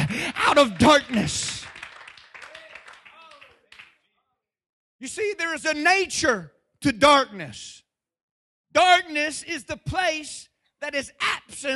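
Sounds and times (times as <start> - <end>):
church congregation clapping hands during a sermon: 0.0 - 4.1
speech: 0.6 - 1.5, 5.0 - 7.8, 8.7 - 11.7.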